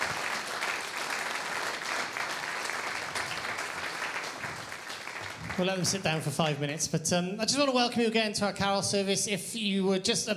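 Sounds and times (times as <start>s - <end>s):
audience at a carol service applauding the band: 0.0s - 6.8s
speech: 5.6s - 10.3s.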